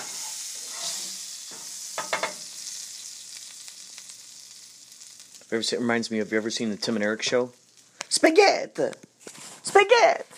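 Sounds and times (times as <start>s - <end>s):
potatoes frying in a pan: 0.0s - 8.9s
speech: 5.5s - 7.6s, 8.2s - 9.0s, 9.8s - 10.3s.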